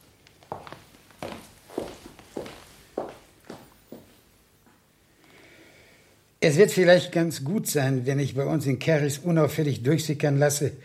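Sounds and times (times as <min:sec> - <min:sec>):
footsteps of a man walking away: 0:00.0 - 0:04.8
speech: 0:06.4 - 0:10.8.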